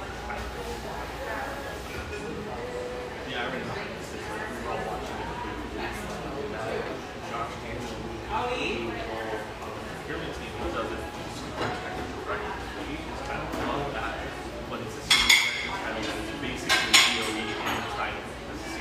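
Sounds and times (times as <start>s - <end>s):
crowd chatter in an espresso joint: 0.0s - 18.8s
cups and dishes clinking: 15.0s - 18.1s.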